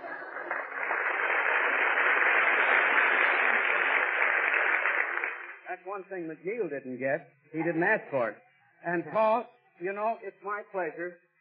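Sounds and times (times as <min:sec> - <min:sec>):
studio audience applause: 0:00.0 - 0:05.8
speech: 0:05.8 - 0:11.2.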